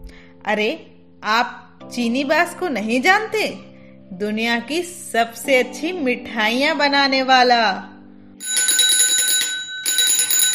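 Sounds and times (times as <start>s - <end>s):
speech: 0.4s - 7.9s
bicycle bell ringing: 8.4s - 10.5s.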